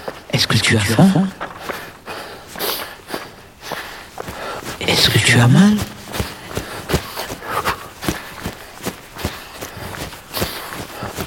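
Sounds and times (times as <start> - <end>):
running footsteps: 0.0 - 11.2
speech: 0.4 - 1.5, 5.3 - 5.9.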